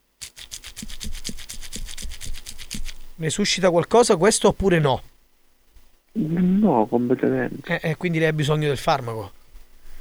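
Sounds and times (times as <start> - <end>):
toy rattling inside a box: 0.2 - 3.1
speech: 3.2 - 5.1, 6.2 - 9.4.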